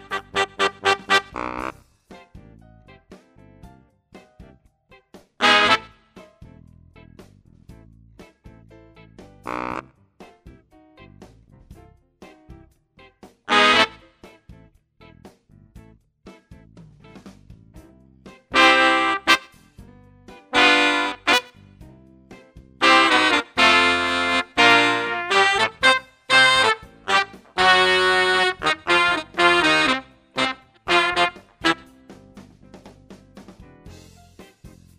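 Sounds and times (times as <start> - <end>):
horns: 0.0 - 1.8, 5.4 - 6.1, 9.4 - 9.9, 13.5 - 14.2, 18.5 - 19.6, 20.5 - 21.6, 22.8 - 32.4.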